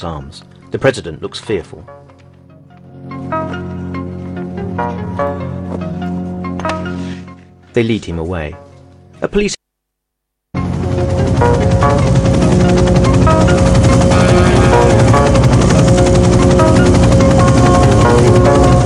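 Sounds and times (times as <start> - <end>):
speech: 0.0 - 2.0, 7.8 - 8.6, 9.2 - 9.6
helicopter flying over Central Park: 10.6 - 18.8.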